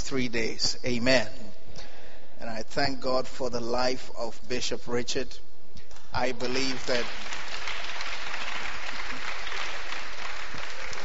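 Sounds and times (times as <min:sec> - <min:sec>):
speech: 0:00.1 - 0:01.4, 0:02.4 - 0:05.5, 0:06.1 - 0:07.4
audience clapping: 0:06.4 - 0:11.0.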